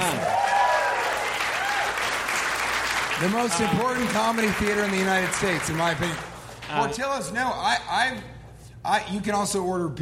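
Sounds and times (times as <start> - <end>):
audience applause: 0.0 - 6.7
speech: 3.2 - 10.0.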